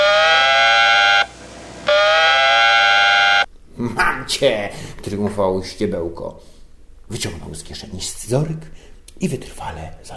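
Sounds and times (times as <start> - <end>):
loud piercing electronic buzz of a device: 0.0 - 3.5
speech: 3.9 - 10.1.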